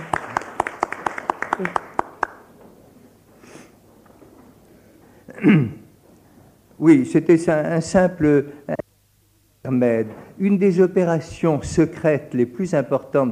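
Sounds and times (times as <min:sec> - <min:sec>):
audience applause: 0:00.0 - 0:02.6
speech: 0:01.6 - 0:01.9, 0:06.8 - 0:08.8, 0:09.7 - 0:13.3.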